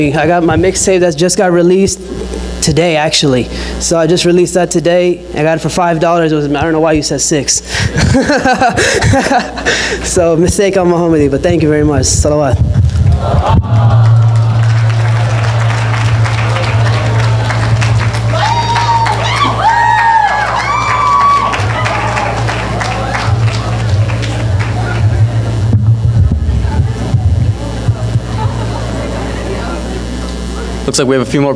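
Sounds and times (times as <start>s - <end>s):
speech: 0.0s - 13.9s, 30.9s - 31.5s
laughter: 7.8s - 10.1s, 13.1s - 25.5s, 26.6s - 30.8s
audience applause and cheering: 13.0s - 25.7s.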